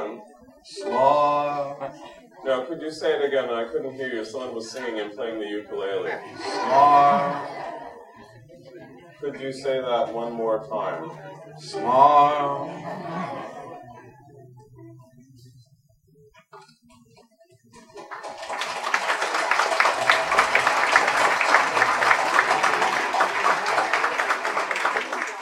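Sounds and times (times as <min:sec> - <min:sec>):
laughter: 0:00.7 - 0:02.7, 0:04.8 - 0:09.4, 0:10.4 - 0:14.7, 0:17.8 - 0:25.4
speech: 0:02.7 - 0:07.7, 0:09.2 - 0:13.4
audience applauding: 0:17.8 - 0:25.4.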